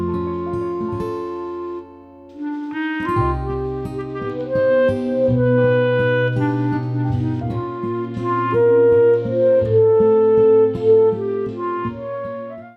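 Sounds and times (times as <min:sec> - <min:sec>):
B-flat clarinet melody: 0:00.0 - 0:12.7.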